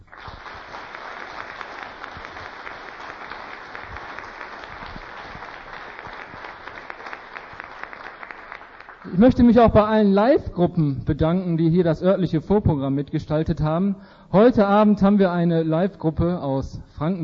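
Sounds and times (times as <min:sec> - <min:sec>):
audience applause: 0:00.0 - 0:09.5
speech: 0:09.1 - 0:17.2.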